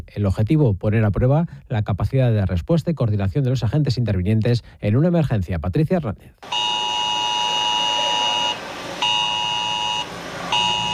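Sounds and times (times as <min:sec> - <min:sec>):
speech: 0:00.1 - 0:06.7
ES-Alert emergency alert tone during forest fire drill in Alcuéscar: 0:06.4 - 0:10.9.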